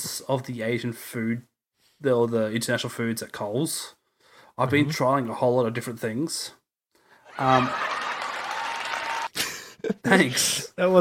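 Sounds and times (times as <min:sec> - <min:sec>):
speech: 0:00.2 - 0:04.0, 0:04.6 - 0:06.6, 0:07.4 - 0:07.9, 0:10.0 - 0:10.9
laughter: 0:07.3 - 0:08.6, 0:09.2 - 0:10.3
crowd applause: 0:07.3 - 0:09.3.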